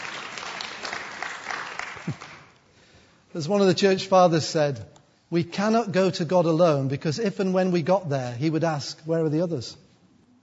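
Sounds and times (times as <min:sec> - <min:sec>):
audience applause: 0:00.0 - 0:02.5
speech: 0:02.1 - 0:02.3, 0:03.3 - 0:09.8.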